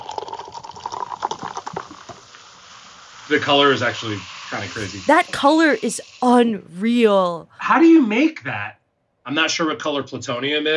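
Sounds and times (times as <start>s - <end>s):
drink poured into a glass: 0.0s - 1.8s
speech: 3.3s - 10.7s.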